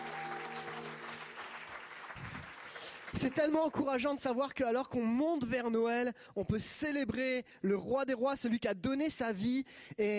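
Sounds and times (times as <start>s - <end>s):
audience applauding and cheering: 0.0s - 3.8s
speech: 3.2s - 10.1s.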